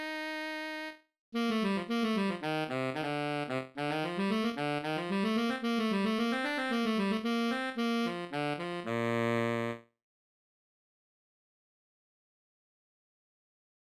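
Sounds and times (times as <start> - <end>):
baritone saxophone: 0.0 - 9.8.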